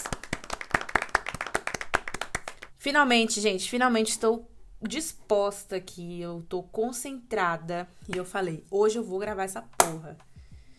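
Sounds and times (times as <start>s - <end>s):
hand clapping: 0.0s - 2.7s
speech: 2.8s - 10.3s.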